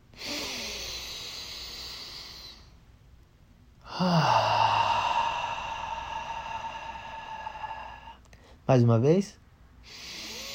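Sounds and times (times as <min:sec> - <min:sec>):
long deep breath during a guided breathing exercise: 0:00.1 - 0:02.8, 0:03.8 - 0:08.6, 0:09.8 - 0:10.5
speech: 0:08.7 - 0:10.0.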